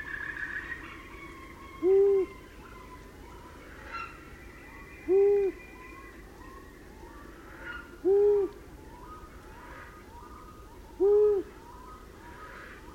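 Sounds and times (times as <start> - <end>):
long-eared owl hooting: 0.0 - 3.0, 5.0 - 6.6, 7.5 - 12.8.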